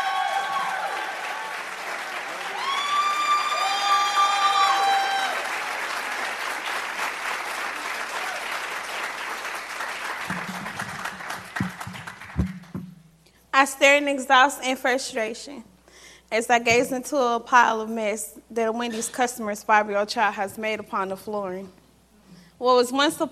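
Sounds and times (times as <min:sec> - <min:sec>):
audience applause: 0:00.0 - 0:12.8
speech: 0:13.6 - 0:15.7, 0:16.3 - 0:21.8, 0:22.6 - 0:23.3.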